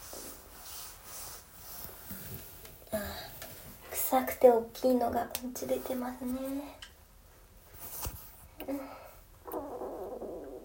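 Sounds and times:
speech: 0:04.2 - 0:06.8
stomach rumbling while digesting: 0:09.4 - 0:10.6.

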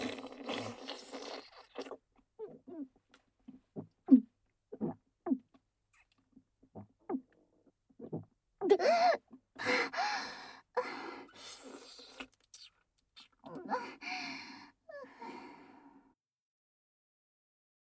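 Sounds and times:
oral sex sounds ASMR loop: 0:00.0 - 0:05.5, 0:08.0 - 0:15.7.

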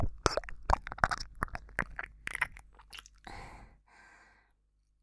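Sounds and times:
ear licking in the left channel: 0:00.0 - 0:03.3.

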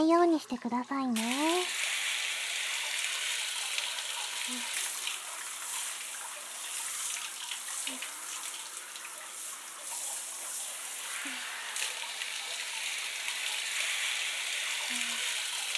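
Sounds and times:
speech: 0:00.0 - 0:01.8, 0:04.5 - 0:04.8
rinsing hair with hot water: 0:01.2 - 0:15.7.

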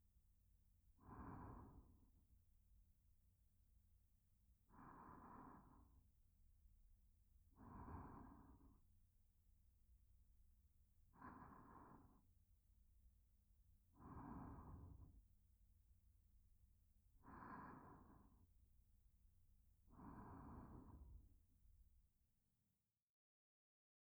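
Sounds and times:
sleeping breath: 0:01.0 - 0:02.2, 0:04.7 - 0:06.0, 0:07.6 - 0:08.9, 0:11.2 - 0:12.3, 0:13.9 - 0:15.2, 0:17.2 - 0:18.5, 0:19.9 - 0:21.4.

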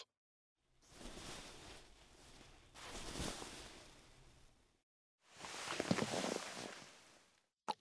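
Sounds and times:
massage sounds: 0:00.8 - 0:04.7, 0:05.3 - 0:07.3.

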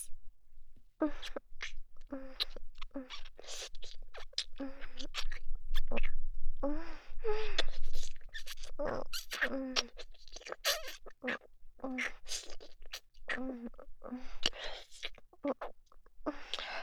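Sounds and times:
sweet ASMR kissing: 0:01.0 - 0:16.7
ASMR ear licking: 0:01.2 - 0:06.2, 0:07.5 - 0:15.8.

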